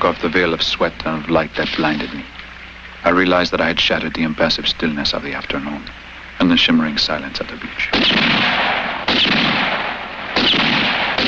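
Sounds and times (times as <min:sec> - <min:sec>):
speech: 0:00.0 - 0:02.4, 0:03.0 - 0:09.6
gunshots: 0:07.9 - 0:11.2.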